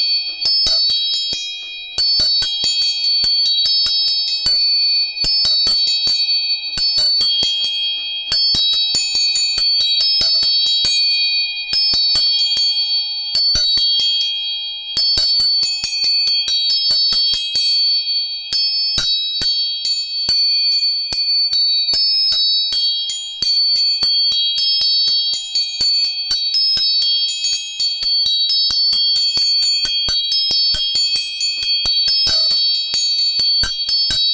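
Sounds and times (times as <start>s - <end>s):
tuning forks ringing: 0.0s - 34.3s.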